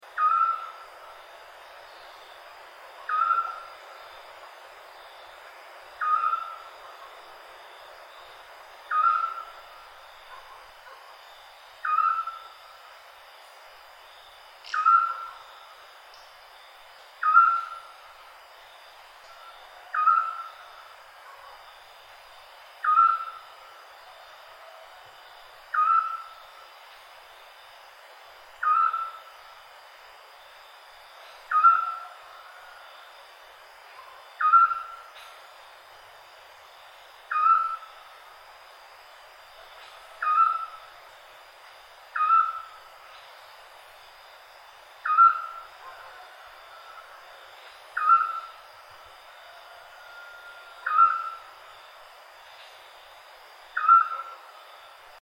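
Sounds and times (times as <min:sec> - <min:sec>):
night bird calls: 0:00.1 - 0:00.9, 0:02.9 - 0:04.0, 0:06.0 - 0:07.3, 0:08.9 - 0:09.7, 0:11.8 - 0:12.8, 0:14.6 - 0:15.7, 0:17.2 - 0:18.1, 0:19.2 - 0:21.6, 0:22.8 - 0:23.6, 0:25.7 - 0:26.4, 0:28.6 - 0:29.3, 0:31.4 - 0:32.8, 0:33.9 - 0:35.4, 0:37.3 - 0:38.0, 0:39.7 - 0:40.9, 0:42.1 - 0:43.3, 0:45.0 - 0:48.7, 0:50.0 - 0:51.6, 0:53.7 - 0:54.6.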